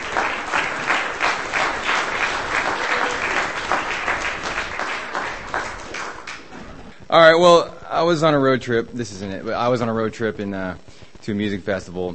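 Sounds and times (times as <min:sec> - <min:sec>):
audience applause for a performer at a reading: 0:00.0 - 0:06.9
speech: 0:07.1 - 0:12.1.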